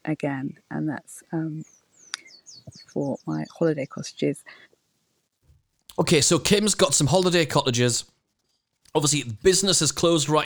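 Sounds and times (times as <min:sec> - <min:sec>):
speech: 0:00.0 - 0:01.8, 0:02.6 - 0:04.7, 0:06.0 - 0:08.2, 0:08.9 - 0:10.4
birds tweeting in the background: 0:01.5 - 0:04.0.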